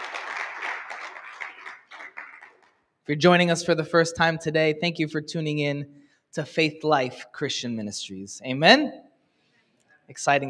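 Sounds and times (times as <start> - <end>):
audience clapping: 0.0 - 2.8
speech: 3.1 - 9.0, 10.1 - 10.4.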